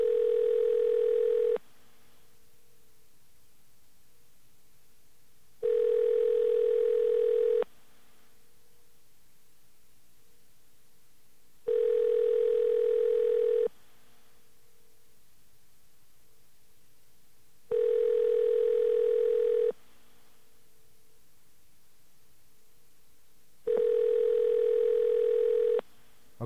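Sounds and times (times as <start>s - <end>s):
telephone ringing: 0.0s - 1.6s, 5.6s - 7.6s, 11.7s - 13.7s, 17.7s - 19.7s, 23.7s - 25.8s
quiet hiss: 0.0s - 26.4s.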